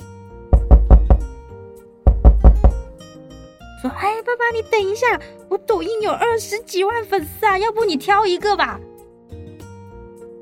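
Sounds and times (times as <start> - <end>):
knocking on a door: 0.5 - 1.4, 2.0 - 2.9
speech: 3.8 - 8.9.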